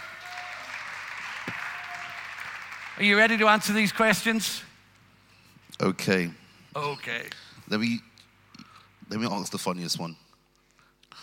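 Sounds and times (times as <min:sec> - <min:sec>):
faint audience applause in a church: 0:00.0 - 0:04.4
speech: 0:03.0 - 0:04.7, 0:05.8 - 0:08.1, 0:09.1 - 0:10.2.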